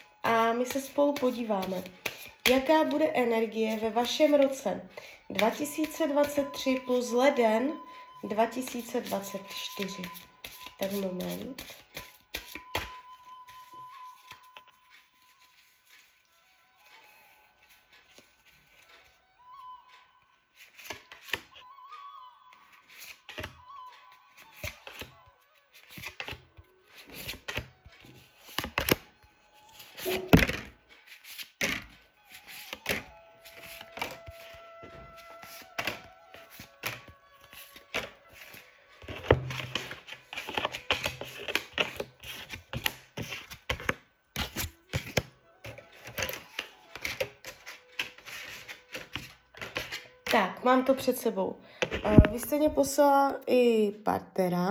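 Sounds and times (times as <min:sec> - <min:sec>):
shuffling playing cards: 0:00.6 - 0:07.4, 0:08.3 - 0:16.1, 0:20.7 - 0:21.5, 0:24.4 - 0:25.1, 0:25.8 - 0:29.1, 0:29.7 - 0:51.0, 0:51.8 - 0:52.8
speech: 0:00.6 - 0:11.8, 0:50.7 - 0:54.6.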